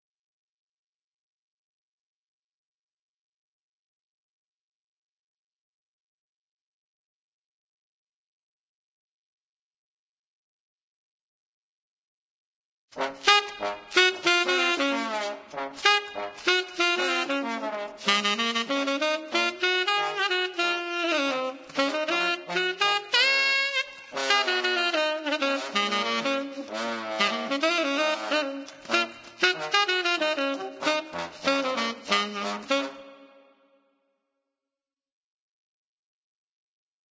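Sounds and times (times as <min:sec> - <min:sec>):
saxophone duet: 0:13.0 - 0:33.7.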